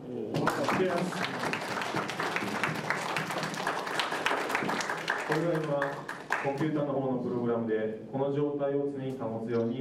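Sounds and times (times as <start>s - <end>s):
audience applause after robot demo: 0.3s - 6.8s
speech: 5.8s - 9.7s.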